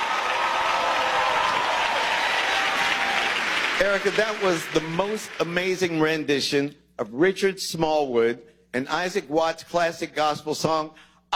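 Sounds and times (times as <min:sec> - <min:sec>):
audience applause for a gospel singer: 0:00.0 - 0:05.8
speech: 0:03.8 - 0:11.3.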